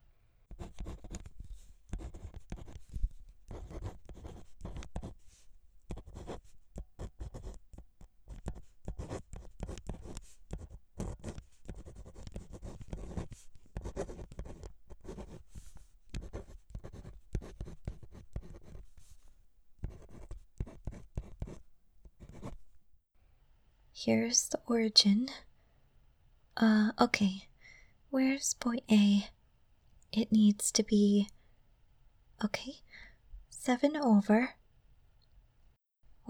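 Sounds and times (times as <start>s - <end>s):
pen or pencil scratching across paper drawing a diagram: 0.5s - 22.6s
speech: 24.0s - 25.5s, 26.6s - 27.5s, 28.2s - 29.4s, 30.1s - 31.3s, 32.4s - 34.6s.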